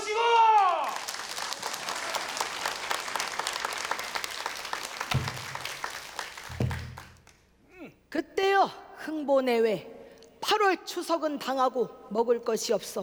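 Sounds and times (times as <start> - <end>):
audience applause: 0.6 - 7.3
speech: 9.3 - 9.9, 10.6 - 13.0.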